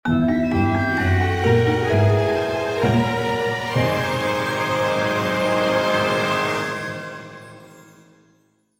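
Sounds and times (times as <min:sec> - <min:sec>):
cutscene victory music: 0:00.2 - 0:07.9.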